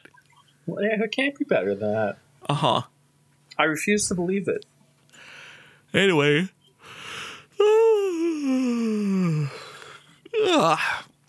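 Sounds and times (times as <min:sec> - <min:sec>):
speech: 0:00.7 - 0:02.9, 0:03.6 - 0:04.7, 0:05.9 - 0:06.6, 0:10.6 - 0:11.0
big yawn: 0:07.0 - 0:11.1.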